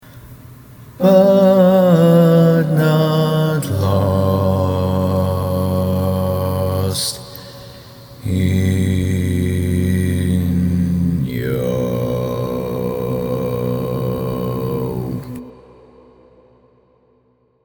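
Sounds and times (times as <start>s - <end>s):
barbershop tags singing: 1.0s - 7.5s, 8.2s - 15.5s.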